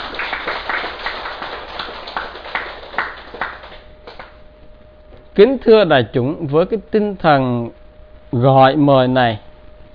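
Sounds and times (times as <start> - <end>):
crowd applause: 0.0 - 4.3
speech: 5.4 - 9.4.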